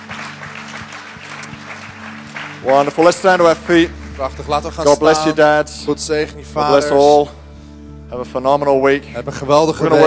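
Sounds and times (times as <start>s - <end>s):
audience applause: 0.0s - 4.8s
speech: 2.6s - 7.4s, 8.1s - 10.0s.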